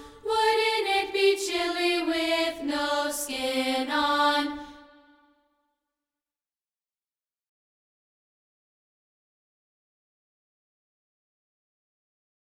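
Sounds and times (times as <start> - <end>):
a cappella singing: 0.0 - 5.3.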